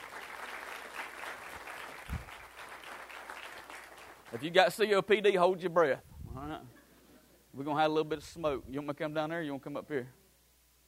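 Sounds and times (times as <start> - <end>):
audience applause: 0.0 - 4.8
speech: 4.3 - 6.8, 7.6 - 10.2.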